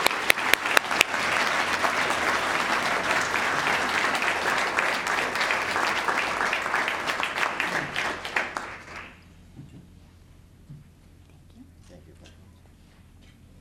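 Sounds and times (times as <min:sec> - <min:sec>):
audience applause: 0:00.0 - 0:09.2.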